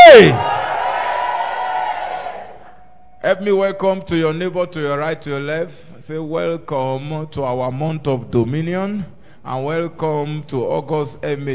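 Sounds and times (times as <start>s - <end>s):
person yelling: 0.0s - 0.5s
church congregation shouting praise at a miracle healing service: 0.0s - 2.7s
speech: 0.2s - 0.5s, 3.3s - 11.5s.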